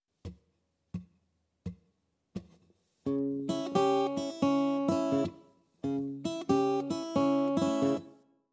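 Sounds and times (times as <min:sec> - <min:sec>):
blues guitar in open tunings: 0:03.1 - 0:08.1.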